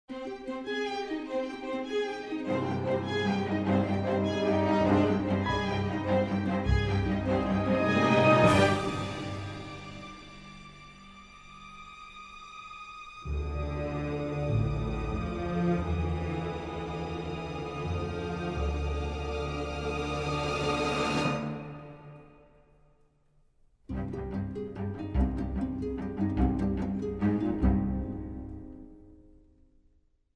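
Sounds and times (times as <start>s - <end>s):
music: 0.1s - 30.2s.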